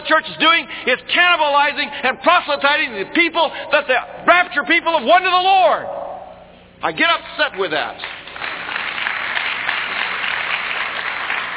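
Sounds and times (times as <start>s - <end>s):
speech: 0.1s - 6.0s, 6.8s - 8.1s
audience clapping: 7.6s - 11.5s.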